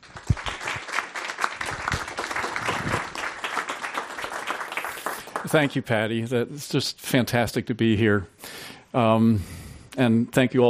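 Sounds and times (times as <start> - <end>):
audience applause welcoming a speaker to a talk on plastic pollutants: 0.0 - 5.9
speech: 5.5 - 10.6.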